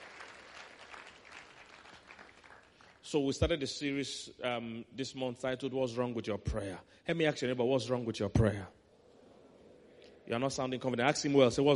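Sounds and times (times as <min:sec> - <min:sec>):
audience clapping: 0:00.0 - 0:03.1
speech: 0:03.1 - 0:08.8, 0:10.3 - 0:11.7.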